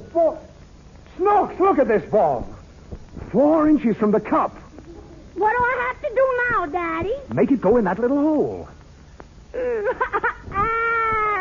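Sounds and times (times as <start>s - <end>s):
speech: 0.1s - 0.5s, 1.2s - 2.5s, 3.3s - 4.6s, 5.4s - 8.8s, 9.5s - 10.8s
child crying and yelling: 10.5s - 11.3s.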